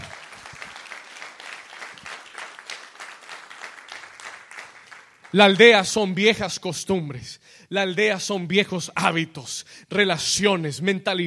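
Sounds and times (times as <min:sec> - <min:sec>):
audience applause: 0:00.0 - 0:05.5
speech: 0:05.3 - 0:11.2.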